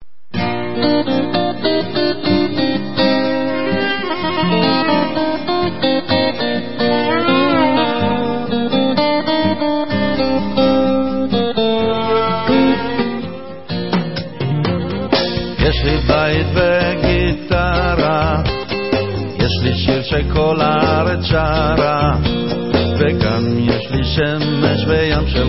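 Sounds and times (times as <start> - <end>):
guitar: 0.0 - 25.4.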